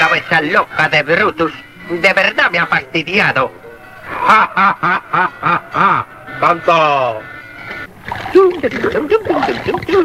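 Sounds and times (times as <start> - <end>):
speech: 0.1 - 10.0
laughter: 4.0 - 6.4
water splashing from washing by hand: 7.6 - 10.0.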